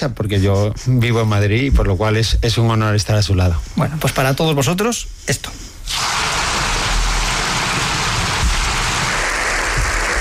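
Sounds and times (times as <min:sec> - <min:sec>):
speech: 0:00.0 - 0:06.1
applause in a parliament chamber: 0:07.2 - 0:10.2.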